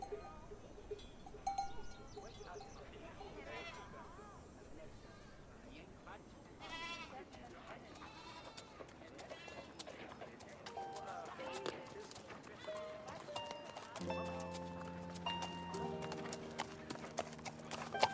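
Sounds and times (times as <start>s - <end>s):
clip-clopping of a horse cart: 0.0s - 3.5s, 7.0s - 18.1s
murmured chatter of a quiet medieval town: 2.0s - 18.1s
held music tones: 10.7s - 18.1s.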